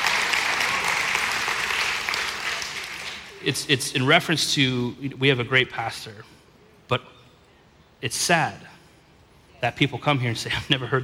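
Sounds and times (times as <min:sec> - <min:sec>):
audience applause: 0:00.0 - 0:03.4
speech: 0:03.4 - 0:07.1, 0:08.0 - 0:08.7, 0:09.6 - 0:11.0.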